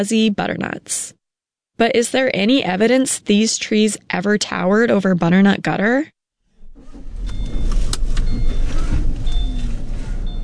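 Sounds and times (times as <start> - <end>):
speech: 0.0 - 1.2, 1.8 - 6.2
car driving with engine rumble and road noise: 6.6 - 10.4.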